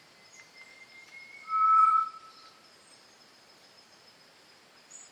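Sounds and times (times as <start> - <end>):
solitary tinamou whistled note: 0.3 - 2.6.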